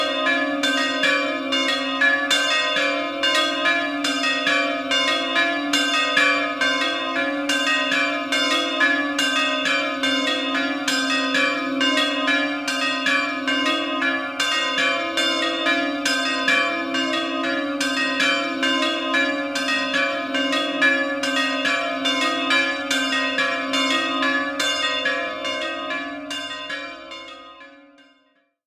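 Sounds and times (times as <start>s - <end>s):
bells in Fratta: 0.0s - 28.6s.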